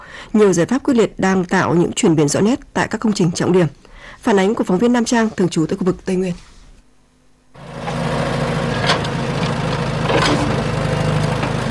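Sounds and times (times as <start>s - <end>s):
speech: 0.3s - 6.5s
trucks and excavators levelling ground at the Hòa Tâm industrial park construction site: 7.6s - 11.6s.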